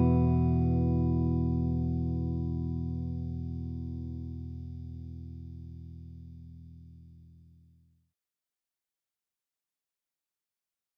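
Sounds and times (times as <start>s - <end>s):
guitar bridge and neck pickups: 0.0s - 4.2s.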